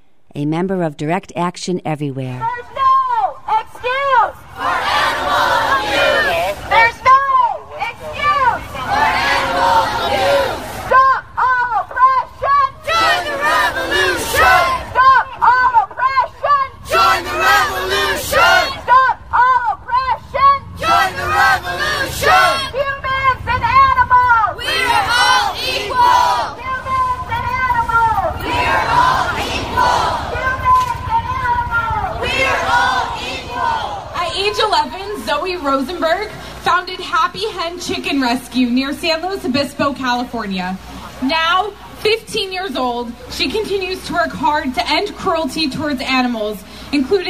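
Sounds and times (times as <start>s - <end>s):
speech: 0.4s - 2.7s, 37.0s - 47.2s
crowd noise: 1.9s - 47.2s
marching crowd of protesters chanting: 3.8s - 7.1s, 7.8s - 19.8s, 20.8s - 34.7s.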